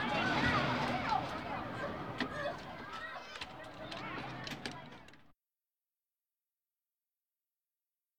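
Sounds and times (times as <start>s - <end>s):
rollercoaster ride: 0.0s - 5.2s.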